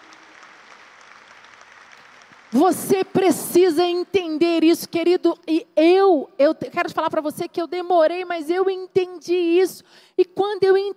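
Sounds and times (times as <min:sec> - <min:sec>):
applause: 0:00.0 - 0:03.2
speech: 0:02.5 - 0:10.9.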